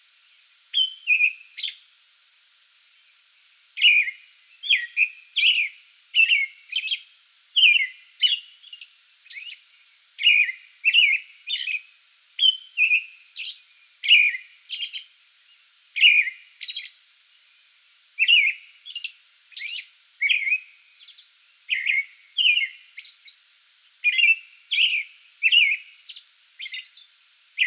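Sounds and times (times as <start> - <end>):
American robin singing: 0.4 - 1.9, 3.0 - 17.1, 18.2 - 23.4, 24.0 - 27.6.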